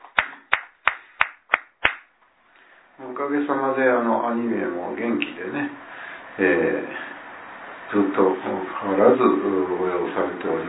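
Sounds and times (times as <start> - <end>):
audience hand claps celebrating birthdays: 0.0 - 2.2
speech: 3.0 - 5.8, 6.4 - 7.0, 7.9 - 10.6.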